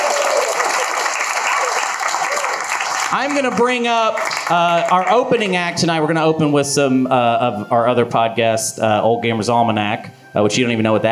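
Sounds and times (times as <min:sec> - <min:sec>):
audience round of applause: 0:00.0 - 0:05.4
speech: 0:03.1 - 0:11.1.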